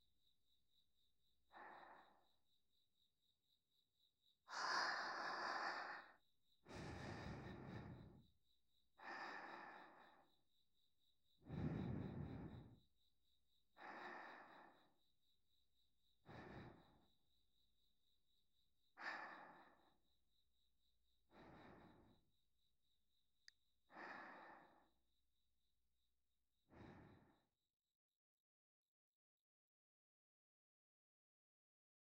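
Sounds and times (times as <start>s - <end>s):
sleep breathing on the right: 1.5s - 2.4s, 4.5s - 8.4s, 9.0s - 10.4s, 11.4s - 13.0s, 13.7s - 15.0s, 16.2s - 17.2s, 19.0s - 20.1s, 21.2s - 22.3s, 23.9s - 25.0s, 26.7s - 27.5s.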